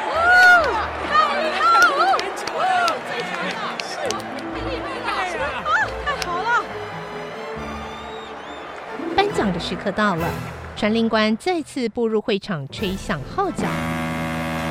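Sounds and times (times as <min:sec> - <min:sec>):
crowd cheering wildly: 0:00.0 - 0:11.4
speech: 0:09.7 - 0:14.0.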